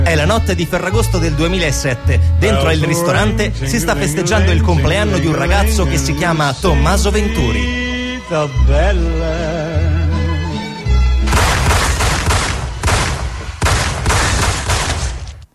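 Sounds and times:
speech: 0.1 - 9.9
many gunshots: 11.2 - 15.5.

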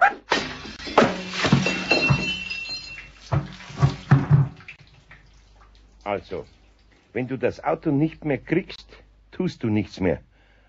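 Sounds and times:
pot of water thrown onto floor: 0.3 - 4.8
speech: 6.1 - 10.3.

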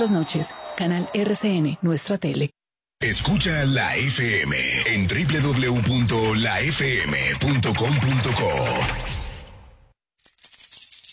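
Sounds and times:
speech: 0.0 - 9.1
coins dropping as a sound effect in a lemonade advert: 10.2 - 11.1.

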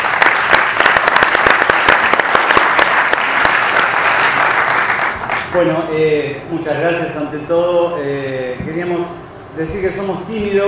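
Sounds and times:
audience applause at a live class session: 0.0 - 5.6
speech: 5.6 - 10.6.

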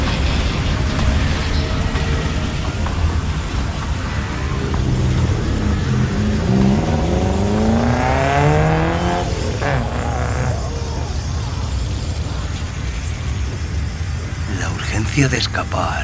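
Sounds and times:
steady loud rumble of traffic noise: 0.0 - 16.0
car engines roaring and revving past: 4.2 - 11.6
speech: 15.2 - 16.0.

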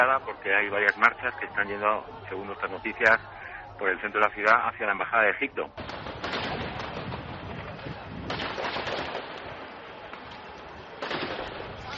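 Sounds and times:
speech: 0.0 - 5.8
gunfire from street clashes: 5.8 - 7.5, 8.2 - 9.6, 11.0 - 11.9.

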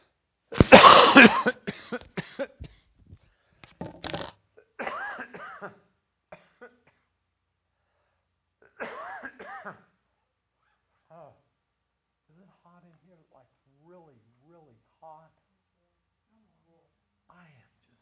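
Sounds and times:
person coughing: 0.6 - 2.8, 4.6 - 5.8, 8.6 - 9.8.

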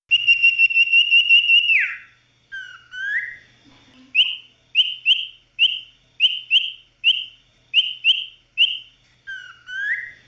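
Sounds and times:
Oriental magpie-robin whistling song: 0.1 - 3.5, 4.2 - 10.2.

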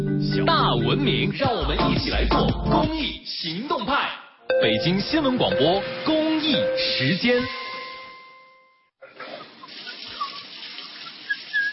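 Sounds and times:
speech: 0.3 - 7.6
water running from an open faucet: 9.0 - 11.7.

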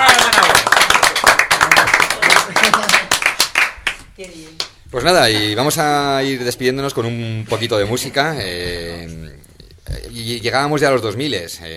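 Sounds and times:
small group in a studio applauding: 0.0 - 4.7
speech: 4.2 - 11.7.

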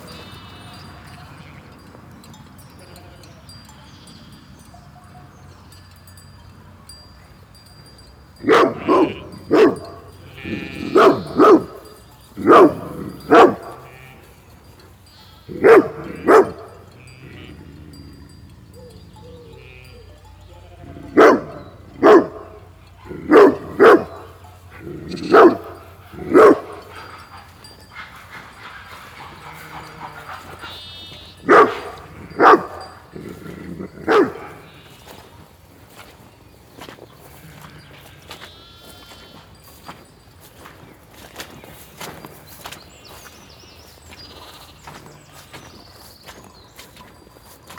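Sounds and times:
buzzy bleat-like sound: 0.0 - 1.6, 10.2 - 11.3, 17.0 - 17.6, 29.4 - 31.4, 37.3 - 39.3
dog barking: 8.4 - 14.0, 15.5 - 17.0, 20.8 - 35.3.

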